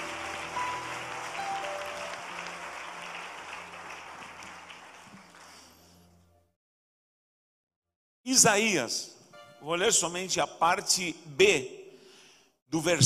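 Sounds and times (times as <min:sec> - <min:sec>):
audience applause: 0:00.0 - 0:06.0
speech: 0:08.3 - 0:11.8, 0:12.7 - 0:13.0.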